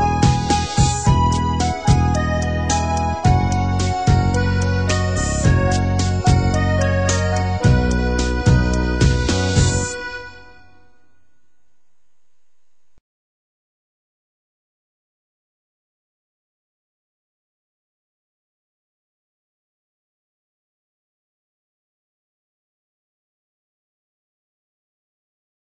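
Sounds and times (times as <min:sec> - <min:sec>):
instrumental music beat: 0:00.0 - 0:10.8.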